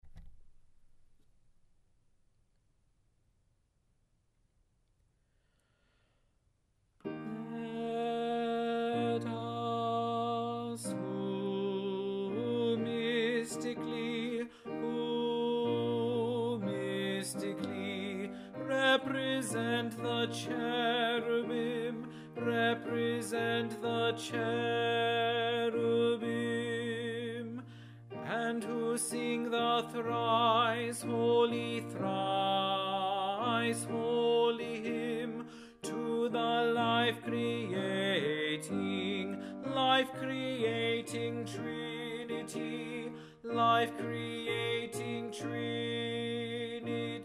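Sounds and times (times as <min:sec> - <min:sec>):
tenor singing: 0:07.1 - 0:47.2.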